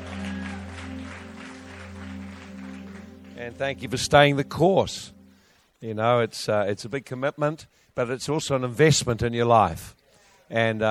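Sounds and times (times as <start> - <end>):
audience clapping: 0.0 - 4.6
speech: 3.4 - 5.2, 5.8 - 10.8.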